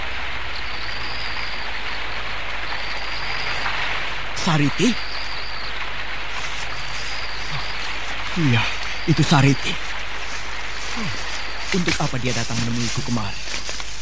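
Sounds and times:
heavy rain at the mouth of a cave: 0.0 - 13.9
howling wind: 0.0 - 13.9
speech: 4.4 - 5.1, 8.4 - 9.9, 11.0 - 13.9
person calling out: 10.9 - 12.0.

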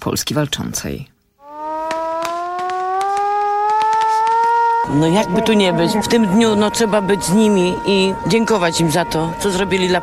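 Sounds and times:
speech: 0.0 - 1.1, 4.9 - 10.0
civil defense siren wailing in Piła Poland for Warsaw Uprising anniversary: 1.4 - 10.0.

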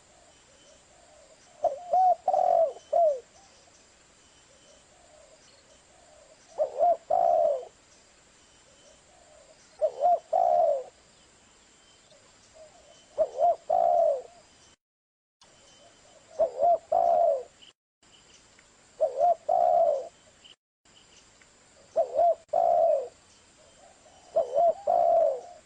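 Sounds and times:
spotted dove cooing: 0.9 - 3.6, 4.9 - 7.8, 9.1 - 11.0, 12.6 - 14.4, 16.0 - 17.6, 19.0 - 20.2, 21.8 - 25.6.

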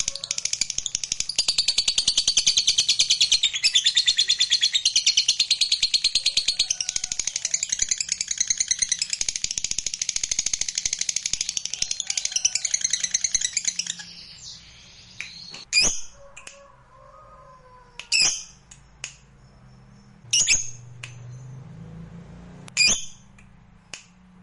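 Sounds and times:
lovebird chattering: 0.0 - 14.4, 20.3 - 20.8.

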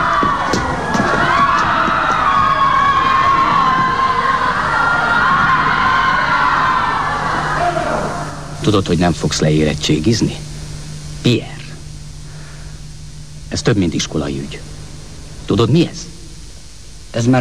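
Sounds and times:
whoops and shouts from the crowd: 0.0 - 8.5
large football crowd at the Hungary–England 6–3 match cheering and roaring: 0.0 - 8.6
speech: 8.7 - 10.5, 11.2 - 11.5, 13.6 - 14.7, 15.5 - 16.1, 17.2 - 17.4.

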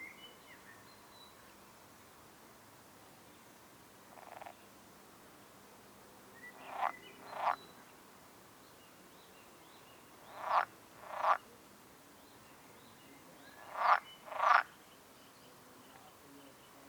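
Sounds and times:
frog croaking: 4.1 - 4.6, 6.7 - 7.6, 10.3 - 11.5, 13.6 - 14.7.

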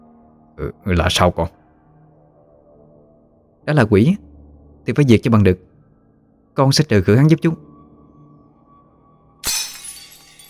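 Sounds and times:
speech: 0.6 - 1.6, 3.7 - 5.7, 6.6 - 7.7
something falling and shattering: 9.4 - 10.4.

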